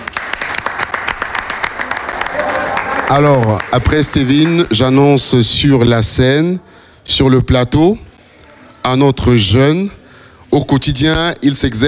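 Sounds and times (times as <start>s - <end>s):
audience applause: 0.0s - 4.5s
speech: 3.1s - 8.1s, 8.8s - 11.8s.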